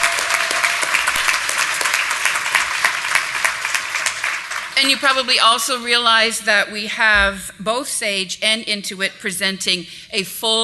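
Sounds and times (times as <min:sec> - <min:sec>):
audience round of applause: 0:00.0 - 0:05.4
speech: 0:04.8 - 0:10.6.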